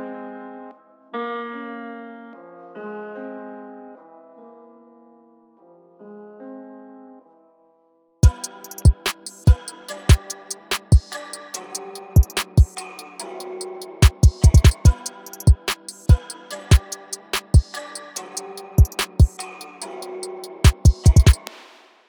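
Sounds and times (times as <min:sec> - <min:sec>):
trap beat samples: 0:08.2 - 0:21.8.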